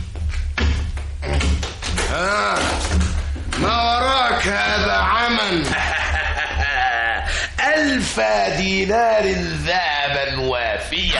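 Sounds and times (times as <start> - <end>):
door being opened: 0.2 - 4.2
laughter: 4.4 - 8.2
speech: 8.2 - 11.0.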